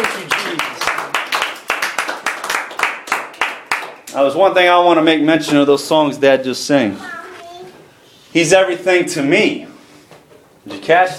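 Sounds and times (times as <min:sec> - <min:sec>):
church congregation clapping hands in praise: 0:00.0 - 0:04.2
speech: 0:04.2 - 0:07.2, 0:08.4 - 0:09.7, 0:10.6 - 0:11.1.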